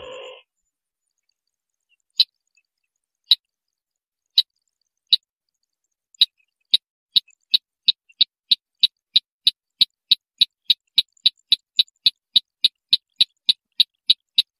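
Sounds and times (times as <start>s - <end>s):
white-breasted waterhen train of sharp clicks: 6.2s - 14.5s.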